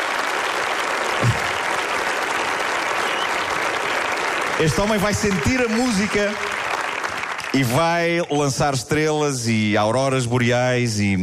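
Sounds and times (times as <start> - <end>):
audience applause: 0.0 - 8.2
speech: 4.6 - 6.5, 7.6 - 11.2.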